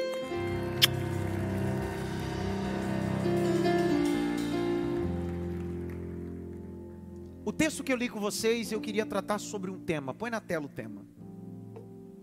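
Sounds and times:
sustained musical chords: 0:00.0 - 0:10.0
audience applause: 0:00.3 - 0:06.8
speech: 0:07.5 - 0:11.2.

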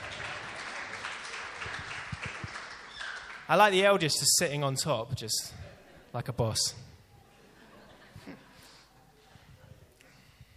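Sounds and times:
audience cheering and applauding: 0:00.0 - 0:03.6
speech: 0:03.5 - 0:06.9
laughter: 0:05.5 - 0:06.1, 0:07.2 - 0:09.7.

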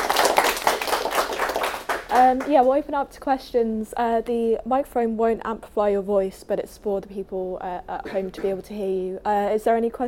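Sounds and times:
applause: 0:00.0 - 0:02.7
speech: 0:02.1 - 0:10.0.

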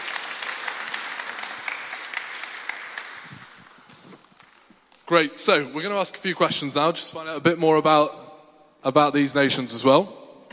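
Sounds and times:
audience applause: 0:00.0 - 0:04.9
speech: 0:05.1 - 0:08.2, 0:08.8 - 0:10.2.

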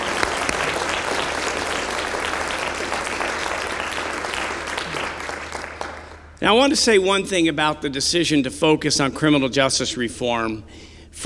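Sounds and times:
audience applause: 0:00.0 - 0:06.4
speech: 0:06.4 - 0:11.2.

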